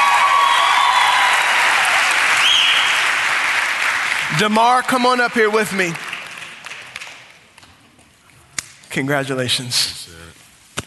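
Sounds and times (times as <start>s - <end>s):
church congregation applauding a mother on stage: 0.0s - 7.6s
speech: 4.4s - 6.0s, 9.0s - 10.0s.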